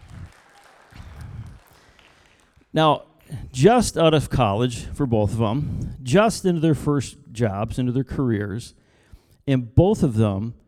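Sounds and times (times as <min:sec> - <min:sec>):
audience clapping: 0:00.0 - 0:02.8
speech: 0:02.8 - 0:08.8, 0:09.5 - 0:10.6.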